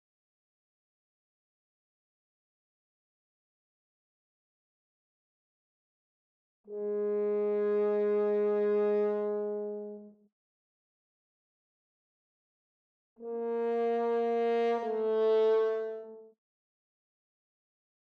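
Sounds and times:
horn: 0:06.7 - 0:10.2, 0:13.2 - 0:16.4.

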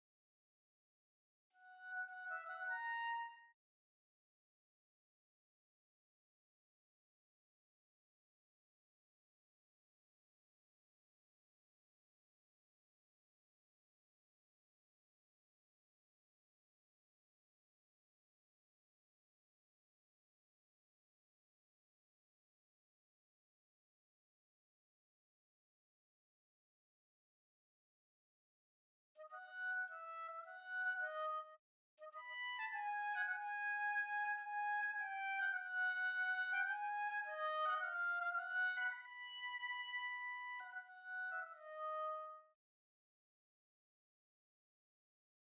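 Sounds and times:
oboe: 0:01.6 - 0:03.5, 0:29.2 - 0:42.5.

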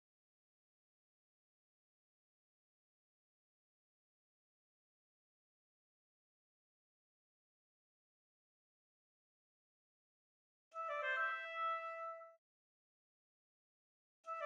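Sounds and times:
oboe: 0:10.8 - 0:12.4.

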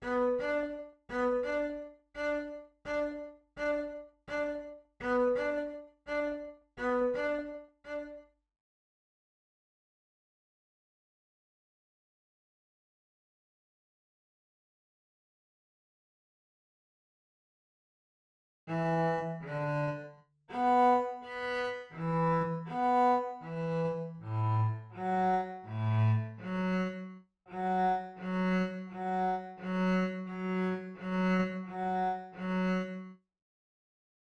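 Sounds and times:
cello: 0:00.0 - 0:08.3, 0:18.7 - 0:33.2.

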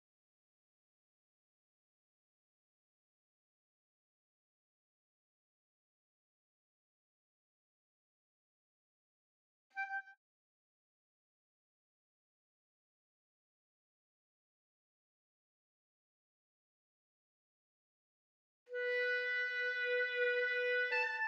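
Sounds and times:
clarinet: 0:09.7 - 0:10.2, 0:18.7 - 0:21.2.

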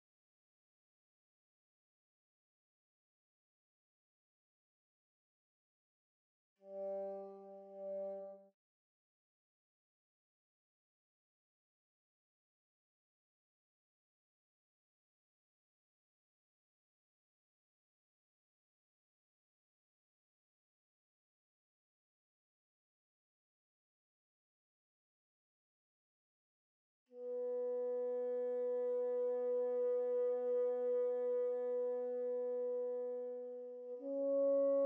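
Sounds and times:
bassoon: 0:06.6 - 0:08.5, 0:27.2 - 0:34.8.

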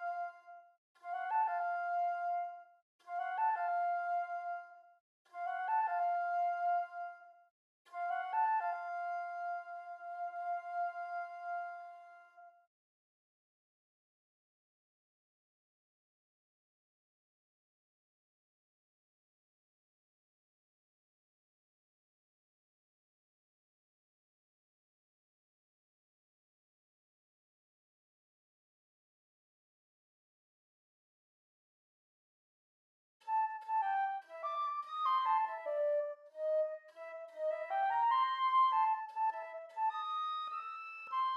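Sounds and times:
flute: 0:00.0 - 0:12.7, 0:33.2 - 0:41.3.

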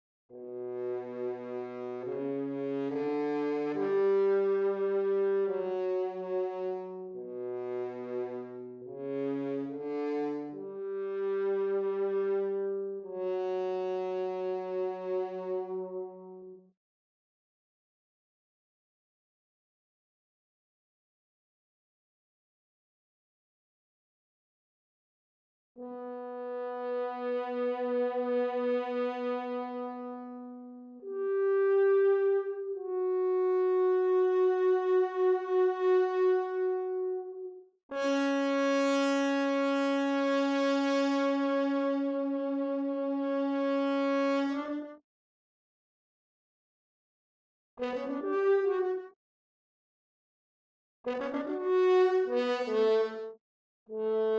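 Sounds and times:
horn: 0:00.3 - 0:16.7, 0:25.8 - 0:45.0, 0:47.8 - 0:49.2, 0:51.0 - 0:54.3.

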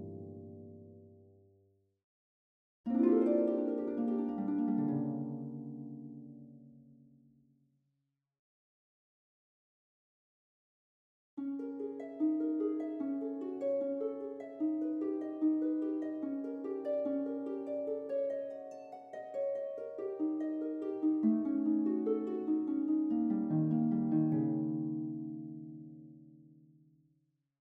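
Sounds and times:
harp: 0:00.0 - 0:01.2, 0:02.9 - 0:07.0, 0:11.4 - 0:26.6.

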